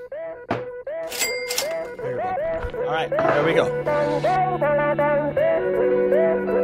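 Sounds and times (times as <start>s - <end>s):
dull thunk: 0.5s - 0.8s
glasses clinking together in a toast: 0.5s - 2.1s
speech: 2.8s - 6.5s.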